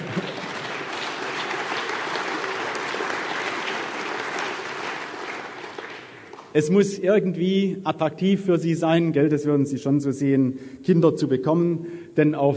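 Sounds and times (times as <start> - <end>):
woman clapping: 0.0 - 6.5
speech: 6.6 - 12.5.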